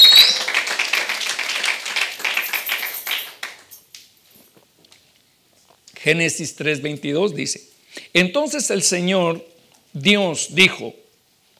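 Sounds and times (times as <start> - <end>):
audience applause: 0.0 - 3.8
speech: 6.0 - 11.0.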